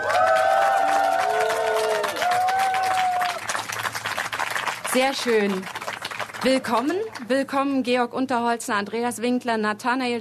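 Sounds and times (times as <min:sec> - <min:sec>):
festival crowd clapping at the Rudolstadt-Festival: 0:00.0 - 0:07.5
speech: 0:04.9 - 0:05.8, 0:06.4 - 0:10.1.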